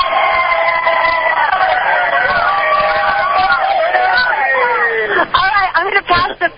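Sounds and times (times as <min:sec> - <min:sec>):
crowd cheering: 0:00.0 - 0:05.7.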